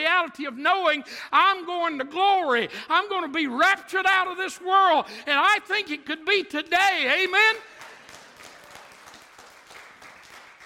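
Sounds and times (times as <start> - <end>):
speech: 0.2 - 7.8
audience clapping: 7.6 - 10.6.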